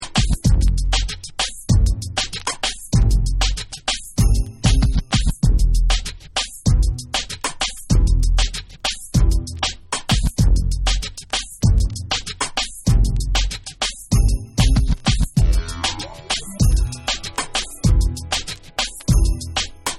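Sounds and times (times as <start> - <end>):
instrumental dancehall remix music: 0.0 - 19.9.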